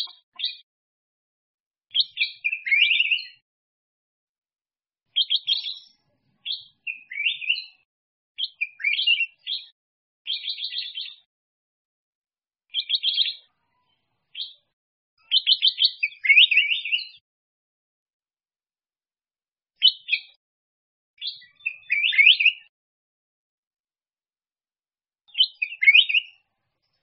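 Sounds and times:
black-crested bulbul warbling song: 0:00.0 - 0:00.6, 0:01.9 - 0:03.4, 0:05.1 - 0:07.8, 0:08.4 - 0:09.7, 0:10.3 - 0:11.3, 0:12.7 - 0:13.5, 0:14.3 - 0:17.2, 0:19.8 - 0:20.4, 0:21.2 - 0:22.7, 0:25.3 - 0:26.5.

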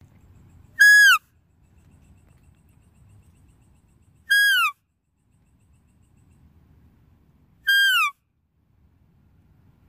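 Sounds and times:
deer whistled calls: 0:00.8 - 0:01.2, 0:04.2 - 0:04.8, 0:07.6 - 0:08.2.

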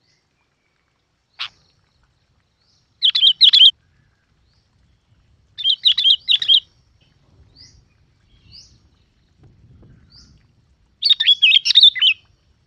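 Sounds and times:
Yellow-vented bulbul bubbly chirping song: 0:00.0 - 0:12.5.

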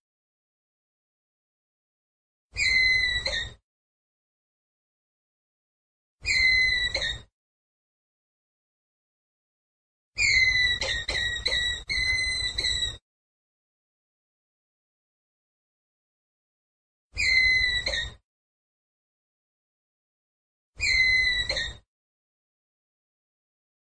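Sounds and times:
ground squirrel whistled call: 0:02.6 - 0:03.6, 0:06.2 - 0:07.2, 0:10.2 - 0:13.0, 0:17.2 - 0:18.2, 0:20.8 - 0:21.8.

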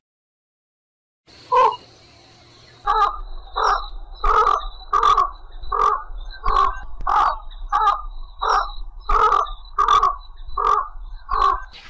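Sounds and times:
little egret croaking calls: 0:01.3 - 0:11.8.

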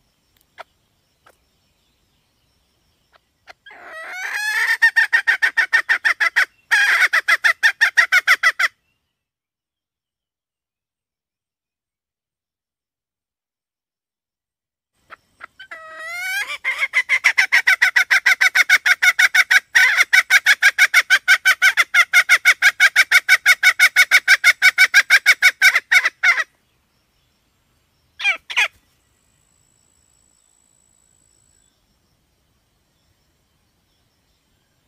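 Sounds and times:
red junglefowl hen squawking and clucking: 0:03.5 - 0:08.7, 0:15.1 - 0:26.5, 0:28.2 - 0:28.8.

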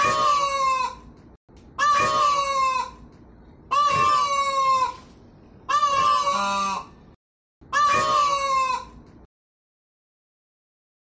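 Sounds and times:
peafowl calling: 0:00.0 - 0:01.1, 0:01.8 - 0:03.0, 0:03.7 - 0:07.0, 0:07.7 - 0:09.0.

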